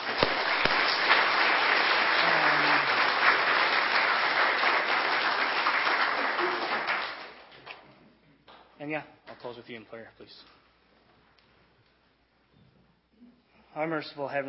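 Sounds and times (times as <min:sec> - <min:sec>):
audience applause: 0:00.0 - 0:07.5
speech: 0:08.9 - 0:10.6, 0:13.8 - 0:14.4.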